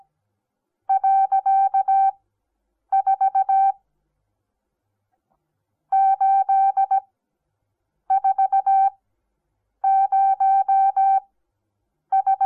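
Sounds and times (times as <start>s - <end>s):
morse code beeps: 0.9s - 2.1s, 2.9s - 3.7s, 5.9s - 7.0s, 8.1s - 8.9s, 9.9s - 11.2s, 12.1s - 12.4s.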